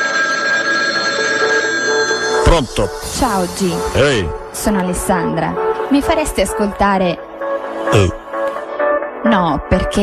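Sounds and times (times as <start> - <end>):
mobile phone ringing: 0.0 - 4.0
speech: 2.5 - 7.3, 7.9 - 8.2, 9.3 - 10.0.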